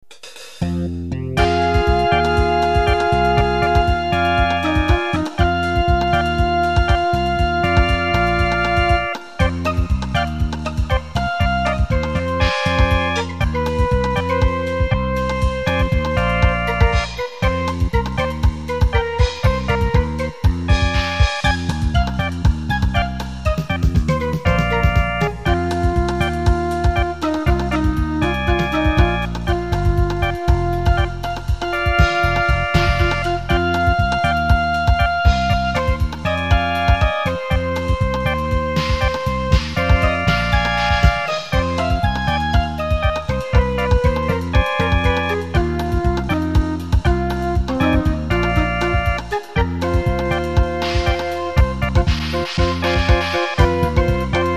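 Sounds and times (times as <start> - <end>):
MIDI music: 0.0 - 54.5.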